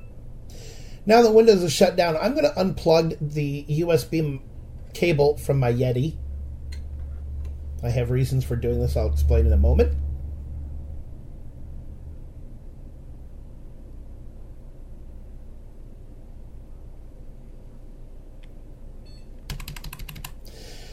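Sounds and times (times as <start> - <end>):
speech: 1.0 - 6.2, 7.8 - 10.0
pressing F12 key on computer keyboard: 19.5 - 20.4.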